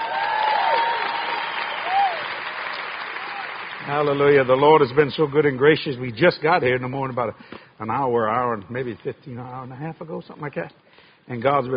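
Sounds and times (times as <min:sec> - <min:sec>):
audience applauding: 0:00.0 - 0:05.3
speech: 0:03.9 - 0:11.7.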